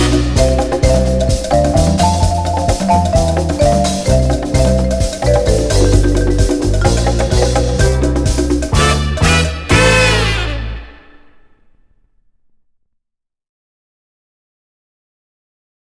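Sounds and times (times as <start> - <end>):
percussion: 0.0 - 11.7.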